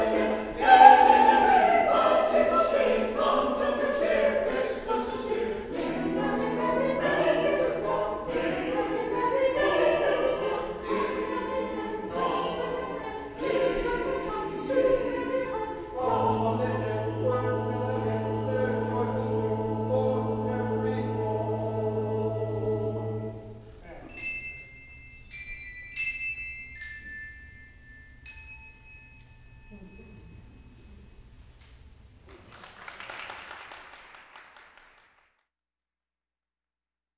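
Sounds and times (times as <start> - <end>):
sanctuary choir singing: 0.0 - 23.8
handbell choir ringing: 24.1 - 31.0.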